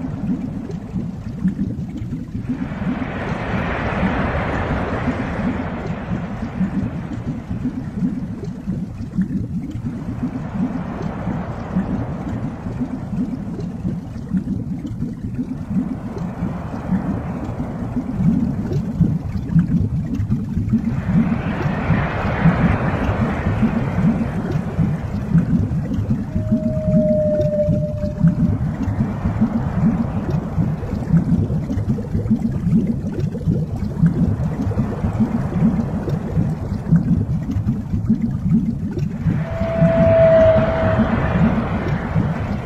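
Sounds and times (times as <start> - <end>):
constant low rumble: 0.0 - 42.6
deep-sea whale sounds: 0.0 - 42.6
whistling tones: 26.2 - 29.0, 39.2 - 42.6.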